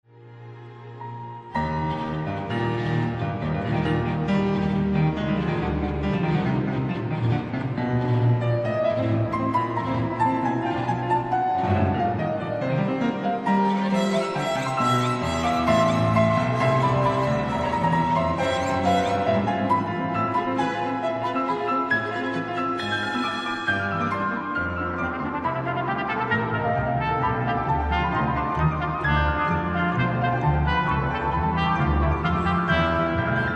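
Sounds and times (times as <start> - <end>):
piano in a concerto: 0.1 - 33.5
trumpet in a concerto: 13.5 - 19.9, 20.6 - 24.3, 25.0 - 33.5.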